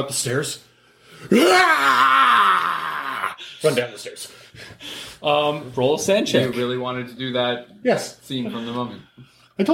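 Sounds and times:
speech: 0.0 - 2.7, 3.4 - 9.7
person imitating a lion roar with a throaty vocal growl: 1.3 - 3.4.

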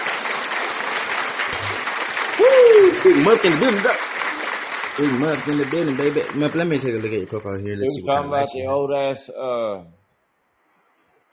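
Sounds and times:
round of applause: 0.0 - 7.9
speech: 2.5 - 4.1, 5.0 - 10.0.

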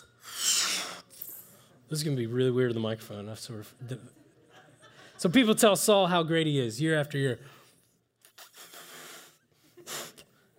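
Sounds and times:
person straining to blow up a balloon: 0.0 - 1.1, 8.2 - 10.3
speech: 1.9 - 4.2, 5.2 - 7.6
laughter: 3.8 - 5.6.

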